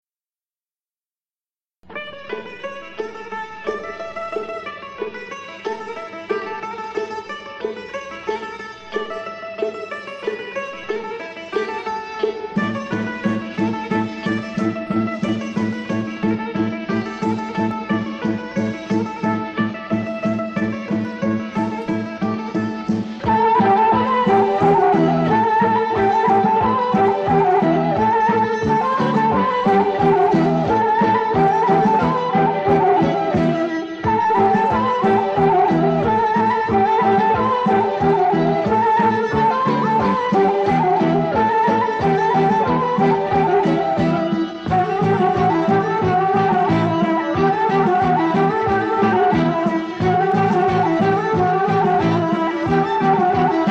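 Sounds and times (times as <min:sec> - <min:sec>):
Bulgarian folk dance music: 0:01.9 - 0:53.7.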